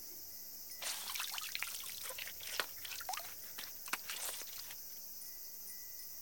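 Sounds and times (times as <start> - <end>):
eating watermelon ASMR: 0.8 - 4.8.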